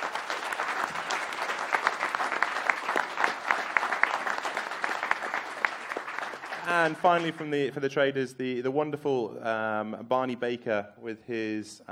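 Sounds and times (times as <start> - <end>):
round of applause: 0.0 - 7.5
speech: 6.7 - 11.8.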